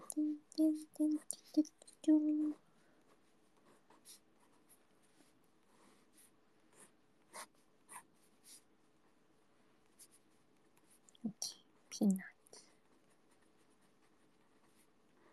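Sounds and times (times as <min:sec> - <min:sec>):
speech: 0:00.6 - 0:02.6, 0:12.0 - 0:12.3
pen drawing on paper: 0:03.6 - 0:08.7, 0:12.9 - 0:15.3.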